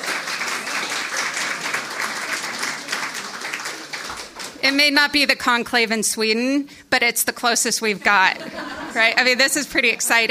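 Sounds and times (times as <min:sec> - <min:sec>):
audience applause for the 2016 Neustadt International Prize finalist announcement: 0:00.0 - 0:04.6
speech: 0:04.6 - 0:10.2
laughter: 0:08.0 - 0:10.2.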